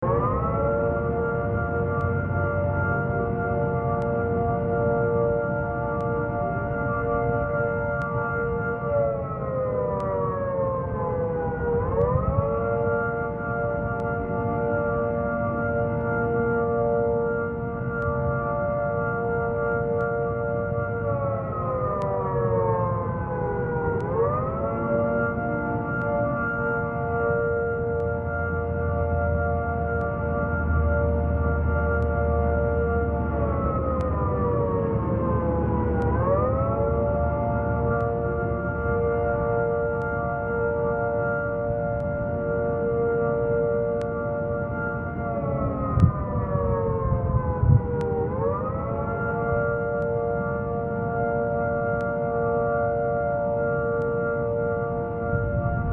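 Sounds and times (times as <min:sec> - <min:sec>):
siren: 0:00.0 - 0:55.9.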